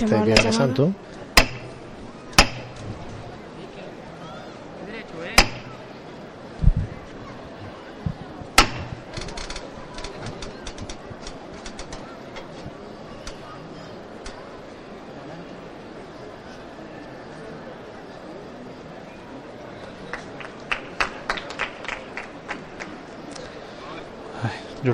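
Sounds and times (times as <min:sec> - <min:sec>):
speech: 0:00.0 - 0:01.2
crowd murmur with voices: 0:00.0 - 0:24.9
crowd applause at procession: 0:19.9 - 0:23.2.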